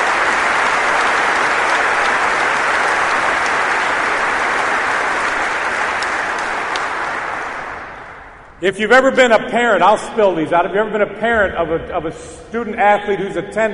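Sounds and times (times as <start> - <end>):
crowd applause: 0.0 - 8.6
speech: 8.6 - 13.7.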